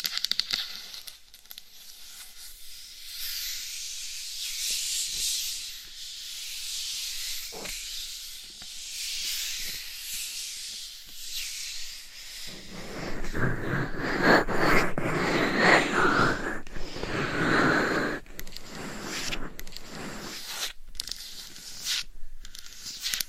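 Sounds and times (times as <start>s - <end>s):
scratching and rubbing on a binaural mic: 9.5s - 23.2s.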